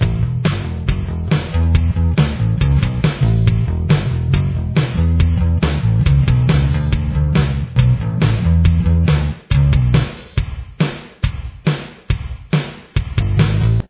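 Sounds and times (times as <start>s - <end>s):
bass: 0.0s - 10.6s, 13.0s - 13.8s.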